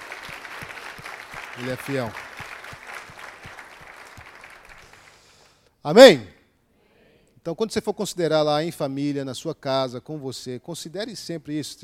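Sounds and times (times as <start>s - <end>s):
audience applauding: 0.0s - 5.6s
speech: 1.6s - 2.3s, 5.8s - 6.4s, 7.4s - 11.8s.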